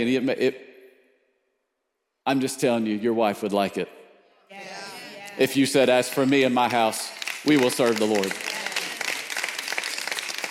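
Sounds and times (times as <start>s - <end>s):
speech: 0.0s - 0.7s, 2.3s - 4.7s, 5.4s - 8.5s
women clapping: 4.8s - 10.5s.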